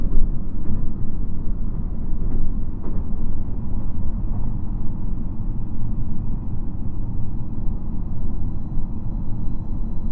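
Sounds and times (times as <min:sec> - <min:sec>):
JR Shikoku 2700 series diesel railcar running: 0:00.0 - 0:10.1.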